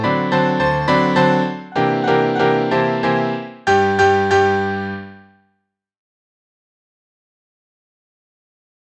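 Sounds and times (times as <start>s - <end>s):
waltz music: 0.0s - 5.3s.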